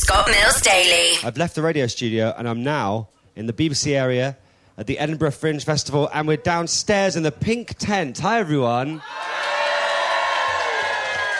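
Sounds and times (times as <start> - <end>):
speech: 0.1 - 9.5
crowd cheering in a tent at the Edinburgh Fringe Festival: 8.9 - 11.3.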